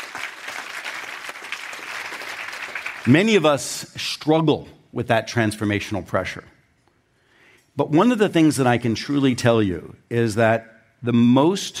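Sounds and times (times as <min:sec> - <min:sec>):
audience applause: 0:00.0 - 0:03.2
speech: 0:03.0 - 0:06.5, 0:07.8 - 0:11.7.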